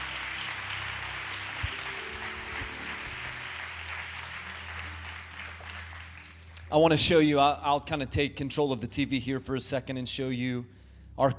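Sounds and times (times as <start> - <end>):
audience applause: 0.0 - 6.7
speech: 6.7 - 11.3.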